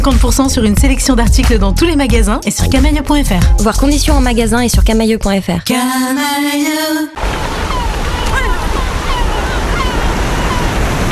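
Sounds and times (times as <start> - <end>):
speech: 0.0 - 7.7
sea waves on the shore: 7.2 - 11.1.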